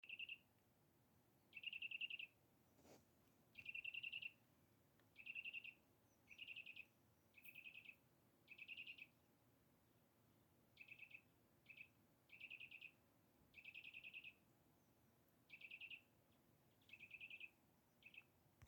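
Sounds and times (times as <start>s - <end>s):
bird: 0.0s - 0.4s, 1.5s - 4.4s, 5.1s - 9.2s, 10.7s - 14.5s, 15.4s - 18.6s.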